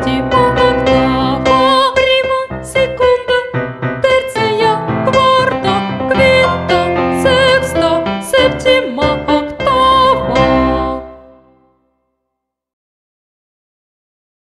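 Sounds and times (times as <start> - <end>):
person singing a song about intervals: 0.0 - 11.5.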